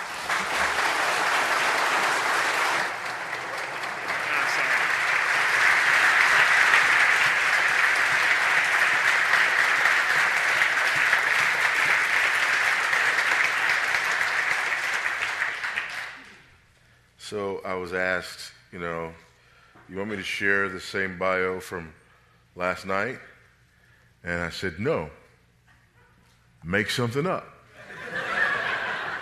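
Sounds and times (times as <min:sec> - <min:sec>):
audience applause welcoming a speaker: 0:00.0 - 0:16.4
speech: 0:17.6 - 0:19.3, 0:19.9 - 0:22.0, 0:22.6 - 0:23.3, 0:24.2 - 0:25.2, 0:26.6 - 0:27.5
laughter: 0:27.8 - 0:29.2.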